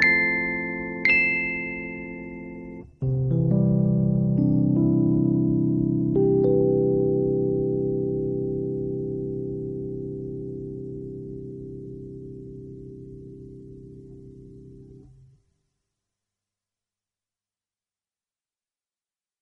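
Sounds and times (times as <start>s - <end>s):
Rhodes electric piano: 0.0s - 15.4s.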